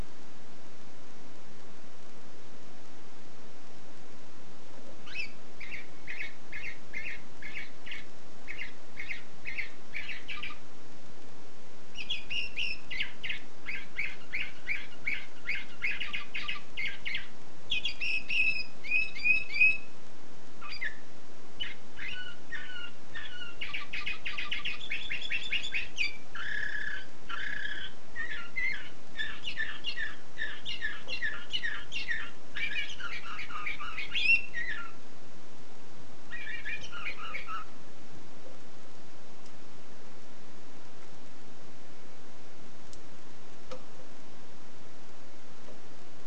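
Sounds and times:
background hiss: 0:00.0 - 0:46.2
canary singing: 0:05.0 - 0:10.7, 0:11.9 - 0:20.0, 0:20.6 - 0:35.0, 0:36.3 - 0:37.8.

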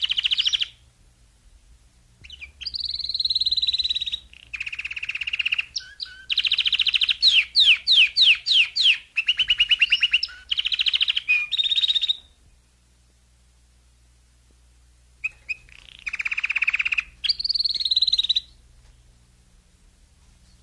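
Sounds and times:
domestic canary song: 0:00.0 - 0:00.9, 0:02.2 - 0:12.7, 0:15.2 - 0:19.0.

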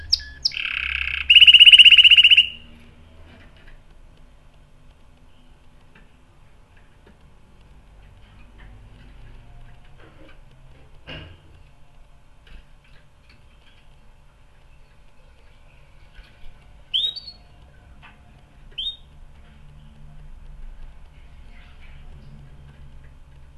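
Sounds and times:
canary trilling: 0:00.0 - 0:02.7, 0:16.9 - 0:17.5, 0:18.8 - 0:19.1.

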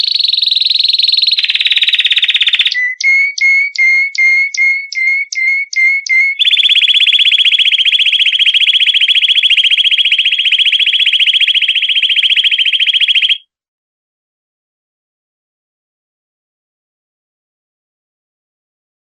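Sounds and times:
canary song in rapid rolling tours: 0:00.0 - 0:13.4.

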